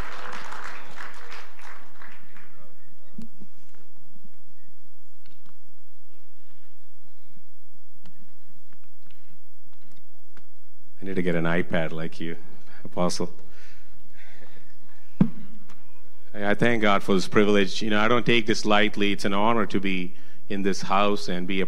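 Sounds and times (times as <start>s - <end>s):
audience applauding: 0.0s - 3.0s
speech: 11.1s - 13.4s, 16.4s - 21.6s.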